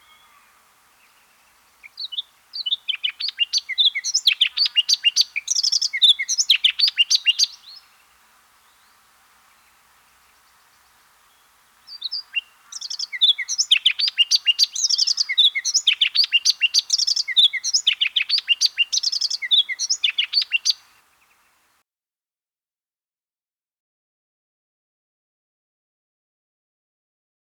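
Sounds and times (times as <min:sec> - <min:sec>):
redthroat singing: 0:01.8 - 0:07.9, 0:11.9 - 0:20.9.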